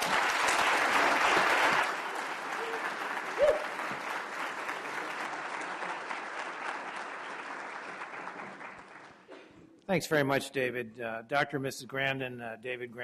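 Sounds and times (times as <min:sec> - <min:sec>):
audience applause welcoming a guest lecturer: 0:00.0 - 0:09.3
speech: 0:09.9 - 0:13.0.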